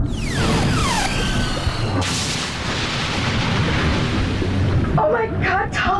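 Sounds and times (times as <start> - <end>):
falling whistling tones: 0.1 - 2.0
stolen submarine exploding in an audio drama: 0.1 - 5.8.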